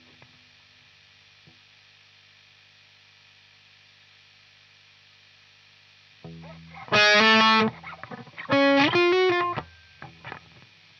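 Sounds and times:
guitar: 6.2 - 10.9.

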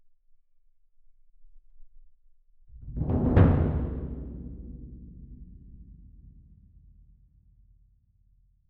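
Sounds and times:
percussion: 2.7 - 7.0.

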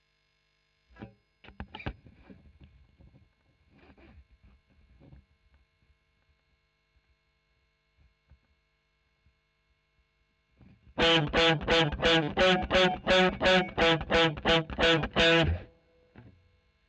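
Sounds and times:
overdriven electric guitar recorded with a Royer microphone: 11.0 - 16.4.

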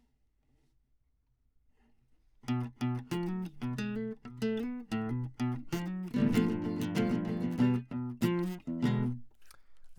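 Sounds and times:
classical guitar: 2.4 - 9.9.

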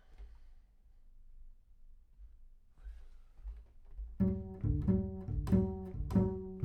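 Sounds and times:
bass sound: 4.2 - 6.6.

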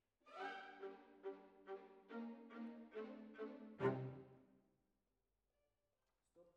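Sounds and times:
cellos playing: 0.3 - 4.5.

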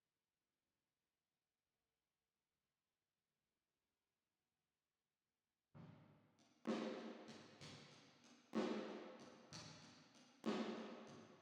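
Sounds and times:
drums with reverb: 6.7 - 11.4.

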